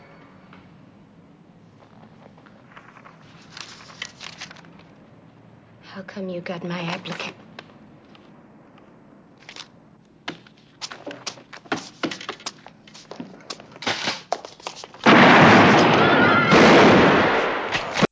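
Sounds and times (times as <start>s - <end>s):
speech: 6.0s - 7.4s
shootout inside a bank branch in Police Woman: 15.0s - 18.1s
shotgun blast in Police Woman: 15.0s - 18.1s.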